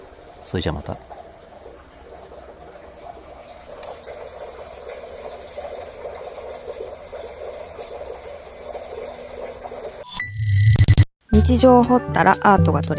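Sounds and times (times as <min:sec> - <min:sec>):
water flowing in an underground culvert: 0:00.0 - 0:10.1
speech: 0:00.5 - 0:01.2, 0:11.4 - 0:12.9.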